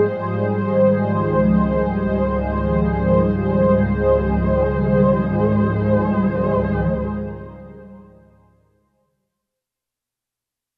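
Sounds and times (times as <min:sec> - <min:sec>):
soft synth pad on a Roland SC-880: 0:00.1 - 0:08.6.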